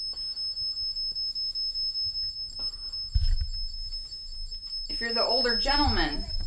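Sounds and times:
K2 EMF meter beeping: 0.0 - 6.4
low thump: 3.1 - 3.7, 5.5 - 6.4
speech: 5.0 - 6.4.

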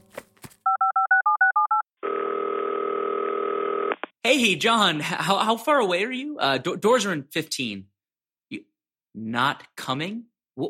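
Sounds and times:
loud steady telephone dial tone: 0.7 - 4.1
speech: 4.2 - 7.9, 8.5 - 10.6.

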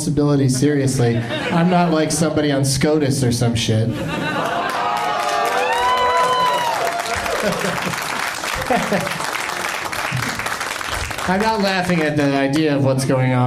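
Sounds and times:
speech: 0.0 - 4.7, 7.4 - 8.0, 8.7 - 9.2, 11.3 - 13.4
laughter: 0.8 - 2.7, 3.8 - 10.3
large audience applause: 4.3 - 12.7
excited whoops and cheering voices: 4.6 - 8.0.

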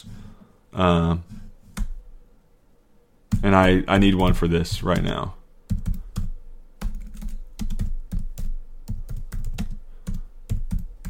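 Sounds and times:
speech: 0.7 - 1.4, 3.4 - 5.4
rapid keyboard typing: 3.3 - 11.0.

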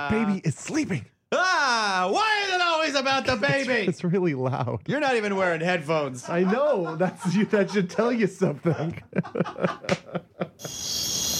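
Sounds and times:
speech: 0.0 - 11.0
laughter: 3.2 - 10.7
outdoor crickets chirping: 10.6 - 11.3.

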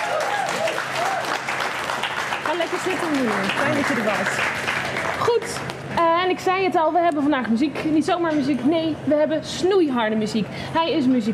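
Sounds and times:
loud audience applause: 0.0 - 5.6
speech: 2.6 - 4.6, 5.2 - 11.3.

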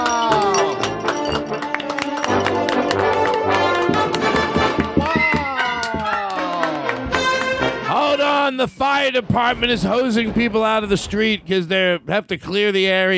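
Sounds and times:
many overlapping shouts from a street crowd: 0.0 - 0.9, 5.0 - 7.0
street crowd cheering and whooping on Main Street in downtown Los Angeles: 0.0 - 1.0, 5.0 - 7.1
scattered claps from a street crowd: 0.0 - 8.1
speech: 8.5 - 13.1.

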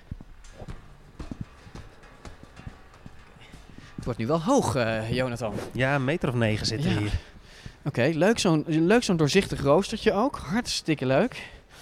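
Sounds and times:
footsteps climbing a staircase in a multi-storey house: 0.0 - 8.6
light hiss: 0.0 - 11.8
speech: 4.0 - 11.6.

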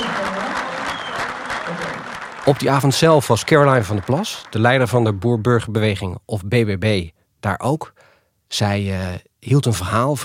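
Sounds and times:
audience clapping along: 0.0 - 5.6
speech: 2.4 - 10.2.

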